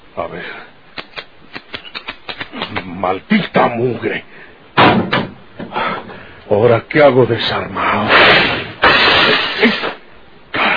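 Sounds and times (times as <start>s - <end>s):
speech: 0.2s - 0.8s, 3.0s - 5.1s, 6.5s - 8.4s
gunshot: 8.1s - 9.9s
window glass breaking: 8.8s - 9.6s.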